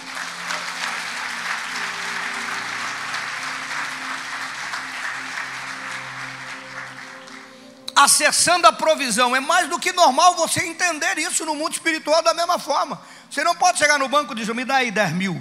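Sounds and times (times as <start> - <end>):
audience applauding: 0.0 - 8.5
low sustained musical tones: 0.0 - 14.7
speech: 8.0 - 15.3.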